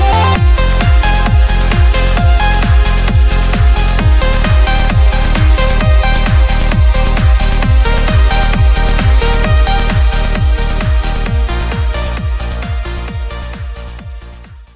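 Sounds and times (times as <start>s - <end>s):
progressive trance music: 0.0s - 14.7s.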